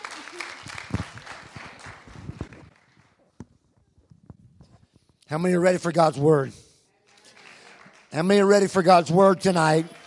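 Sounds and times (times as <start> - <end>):
audience applause: 0.0 - 3.2, 7.1 - 10.0
speech: 5.3 - 6.6, 8.2 - 10.0.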